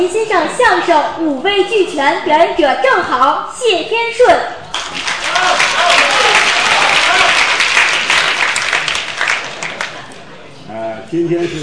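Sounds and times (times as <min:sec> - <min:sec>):
speech: 0:00.0 - 0:06.0, 0:11.1 - 0:11.6
audience applause: 0:04.7 - 0:10.3.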